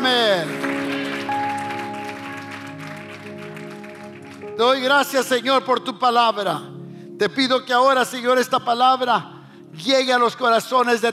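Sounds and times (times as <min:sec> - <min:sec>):
audience applause: 0:00.0 - 0:04.9
speech: 0:04.6 - 0:11.1.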